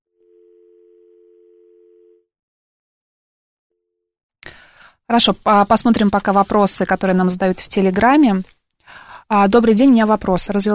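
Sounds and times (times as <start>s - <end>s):
telephone line tone while a dropped call is redialed: 0.2s - 2.3s
speech: 5.1s - 10.7s.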